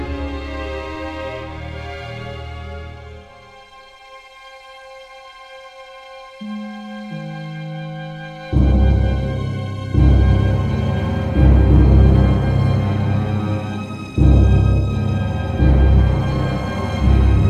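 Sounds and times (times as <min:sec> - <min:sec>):
suspense music loop: 0:06.4 - 0:17.4.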